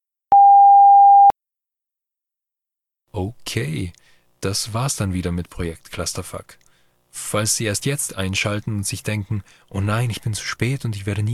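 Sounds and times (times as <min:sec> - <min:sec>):
answering machine beep tone: 0:00.3 - 0:01.3
speech: 0:03.2 - 0:11.3.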